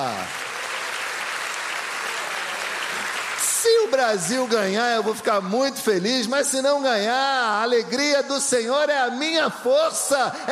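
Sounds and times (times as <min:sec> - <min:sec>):
audience applauding: 0:00.0 - 0:05.4
speech: 0:03.6 - 0:10.5.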